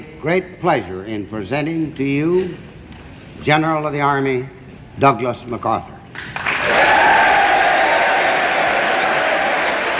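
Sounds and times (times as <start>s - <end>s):
speech: 0.2s - 2.7s, 3.4s - 5.9s
large crowd applauding and cheering: 6.2s - 9.9s.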